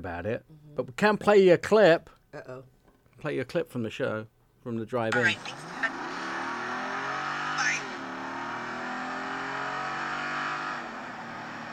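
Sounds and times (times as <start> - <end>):
speech: 0.0 - 5.7
high-horsepower car engine revving: 5.1 - 11.7.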